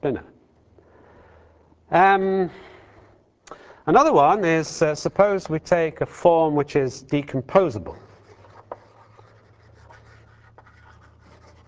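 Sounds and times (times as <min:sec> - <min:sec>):
speech: 0:00.0 - 0:00.3, 0:01.9 - 0:02.7, 0:03.5 - 0:08.0
writing strokes on a board during a lecture: 0:07.9 - 0:11.6.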